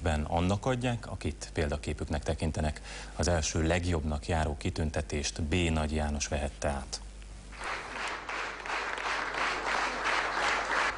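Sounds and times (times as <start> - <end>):
speech: 0.2 - 7.1
opera singers applauding: 7.5 - 10.9.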